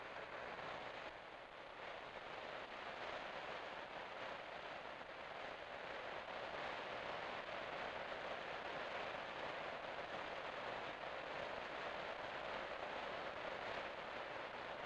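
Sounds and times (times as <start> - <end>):
heavy rain on a roof: 0.0 - 14.8.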